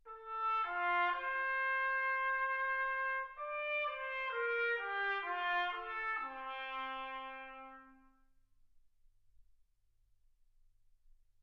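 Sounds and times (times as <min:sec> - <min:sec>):
trumpet: 0:00.0 - 0:08.4.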